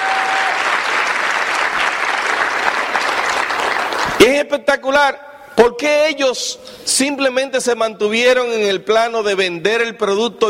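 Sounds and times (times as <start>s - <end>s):
loud audience applause: 0.0s - 4.2s
speech: 4.2s - 10.4s.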